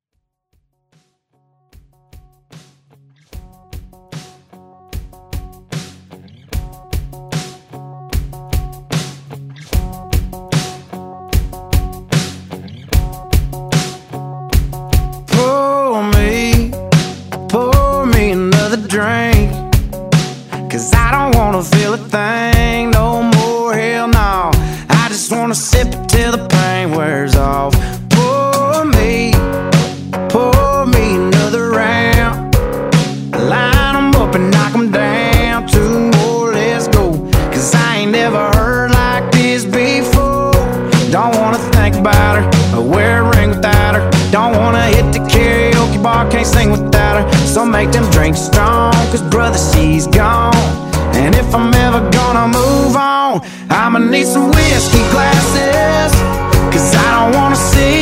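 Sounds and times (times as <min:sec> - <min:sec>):
country music: 0:03.0 - 0:58.0.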